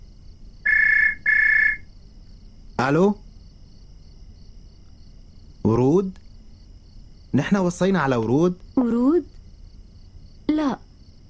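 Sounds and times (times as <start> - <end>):
telephone ringing: 0.7 - 1.8
speech: 2.8 - 3.2, 5.7 - 6.2, 7.3 - 9.2.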